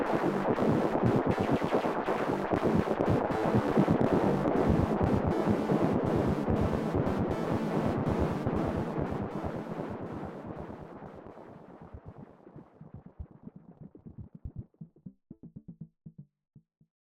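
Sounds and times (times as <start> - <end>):
Dreadbox Erebus V3 three-oscillator synth chord with delay: 0.1 - 12.0.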